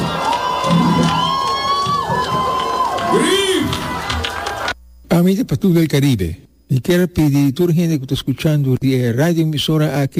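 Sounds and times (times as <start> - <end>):
audience cheering: 0.0 - 4.8
speech: 5.2 - 10.1.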